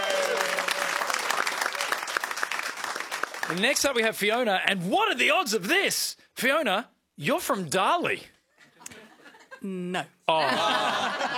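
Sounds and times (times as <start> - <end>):
audience applauding: 0.0 - 4.0
speech: 3.5 - 8.3, 9.6 - 11.2
laughter: 10.3 - 11.3.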